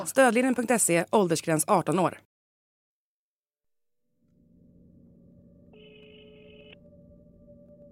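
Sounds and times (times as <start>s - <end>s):
speech: 0.2s - 2.3s
telephone line hum and rumble: 4.1s - 7.8s
electronic telephone ringing tone from Stockholm call: 4.6s - 7.8s.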